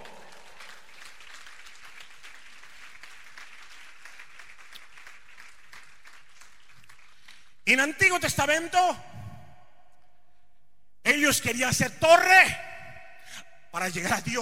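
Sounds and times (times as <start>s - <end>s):
audience applause: 0.0s - 7.4s
speech: 7.7s - 9.1s, 11.3s - 12.7s, 13.8s - 14.3s.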